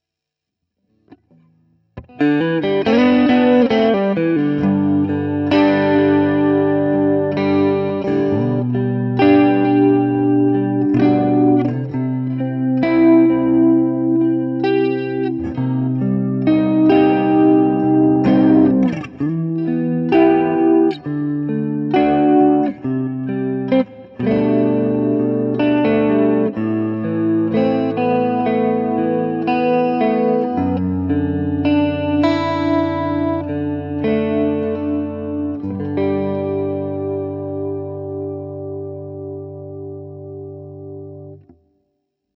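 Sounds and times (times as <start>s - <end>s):
Gretsch ETMC LTD Pristine Jet guitar on neck pickup: 1.0s - 41.6s.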